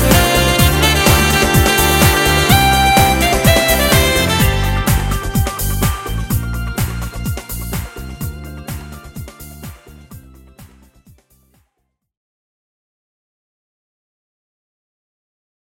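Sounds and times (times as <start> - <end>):
rock pop band playing: 0.0 - 10.5.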